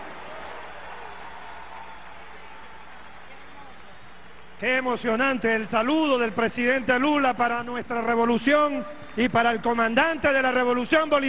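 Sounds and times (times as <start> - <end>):
audience applause: 0.0 - 4.6
speech: 4.6 - 11.2.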